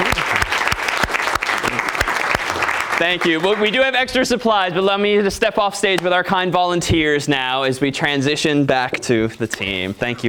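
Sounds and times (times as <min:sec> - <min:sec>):
audience clapping for volunteers on stage: 0:00.0 - 0:04.2
speech: 0:03.0 - 0:10.2.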